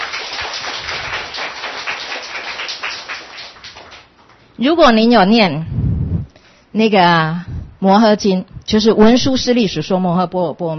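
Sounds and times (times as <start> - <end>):
audience applause: 0.0 - 4.1
speech: 4.6 - 5.8, 6.8 - 10.7.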